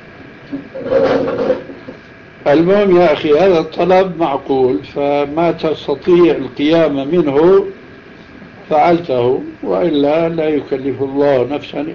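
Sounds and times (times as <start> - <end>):
faint hum: 0.0 - 11.9
speech: 0.5 - 1.4, 2.4 - 7.8, 8.7 - 11.9
wooden chair dragged and set down: 0.7 - 2.0.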